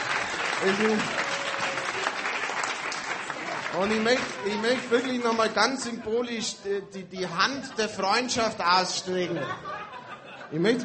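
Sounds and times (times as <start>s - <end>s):
audience applause: 0.0s - 5.9s
speech: 0.6s - 1.2s, 3.7s - 10.8s
laughter: 3.4s - 10.8s.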